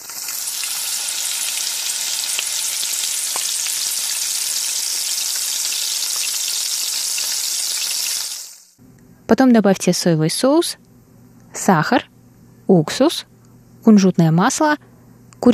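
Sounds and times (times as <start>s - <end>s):
vegetables stir-frying in a pan: 0.0s - 8.8s
speech: 9.3s - 10.9s, 11.6s - 12.1s, 12.7s - 15.5s.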